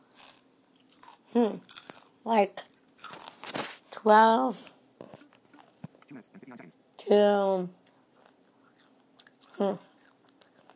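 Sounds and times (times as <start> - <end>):
person eating crunchy fast food fries: 0.0 - 3.8, 7.8 - 10.7
speech: 1.3 - 2.7, 4.0 - 4.7, 6.2 - 7.8, 9.6 - 9.9
brief louder vocal sound: 5.5 - 6.8.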